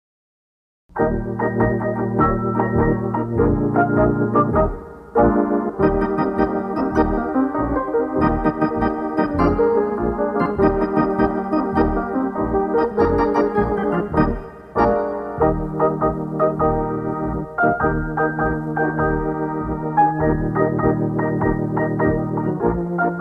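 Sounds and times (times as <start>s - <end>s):
instrumental music: 0.9s - 23.1s.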